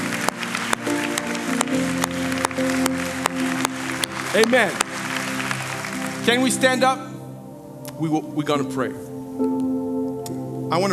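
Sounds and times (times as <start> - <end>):
audience applause: 0.0 - 6.8
speech: 4.4 - 4.8, 6.3 - 7.1, 8.0 - 9.7, 10.7 - 10.9.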